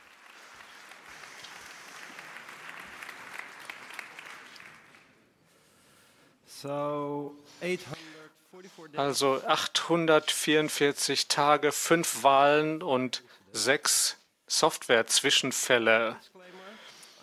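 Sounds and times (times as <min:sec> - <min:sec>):
audience applause: 0:00.0 - 0:05.2
speech: 0:06.6 - 0:08.0, 0:08.7 - 0:16.4.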